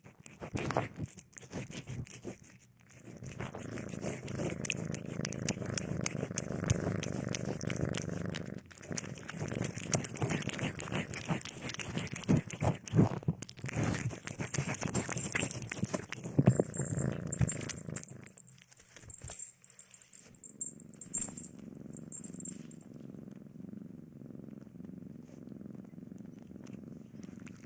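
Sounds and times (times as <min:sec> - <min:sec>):
domestic cat purring: 0:00.1 - 0:27.6
handling noise and rustling: 0:14.5 - 0:22.8.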